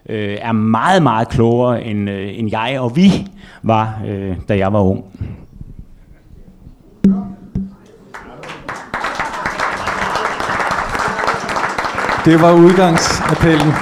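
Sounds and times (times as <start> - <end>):
speech: 0.1 - 5.4, 7.0 - 7.3, 12.2 - 13.8
audience applause: 8.1 - 13.8.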